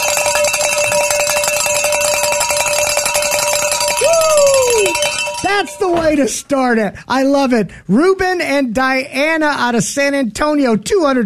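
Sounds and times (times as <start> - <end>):
hand bell ringing: 0.0 - 6.2
speech: 5.5 - 11.2.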